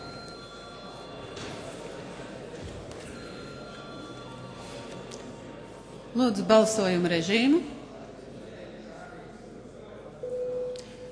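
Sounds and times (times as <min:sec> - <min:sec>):
parliament chamber electronic bell ringing before vote: 0:00.0 - 0:01.4, 0:03.1 - 0:04.9
murmur of voices in a large chamber: 0:00.0 - 0:11.1
speech: 0:06.2 - 0:07.8.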